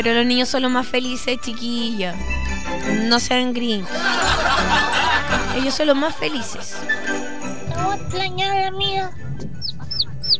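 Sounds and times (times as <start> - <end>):
speech: 0.0 - 7.2, 7.8 - 9.4
laughter: 3.8 - 7.4, 9.3 - 10.3
chick peeping: 9.4 - 10.3.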